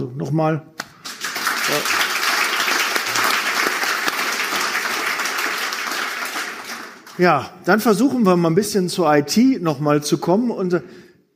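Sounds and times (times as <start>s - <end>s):
speech: 0.1s - 0.7s, 1.7s - 2.0s, 7.2s - 11.0s
audience applause: 1.0s - 7.2s.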